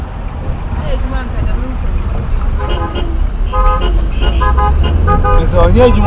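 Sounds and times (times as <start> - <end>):
dense road traffic at traffic lights in a town in Ghana rumbling: 0.0 - 6.0
speech: 0.9 - 1.9, 2.6 - 6.0
car horns honking in short overlapping toots: 2.5 - 6.0.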